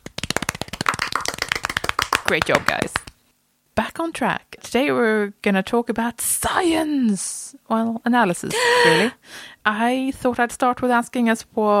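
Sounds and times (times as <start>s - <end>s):
small round of applause: 0.1s - 3.1s
speech: 2.3s - 3.0s, 3.8s - 11.7s.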